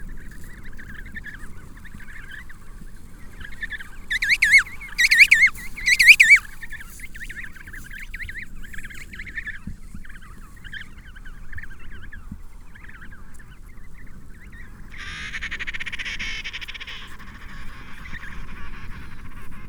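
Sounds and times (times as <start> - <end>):
penguin calls in loud wavering harmonic bursts: 4.1 - 6.5.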